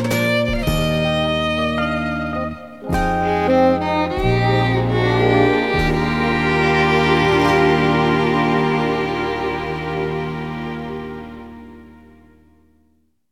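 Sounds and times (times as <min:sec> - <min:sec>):
instrumental song: 0:00.0 - 0:12.7.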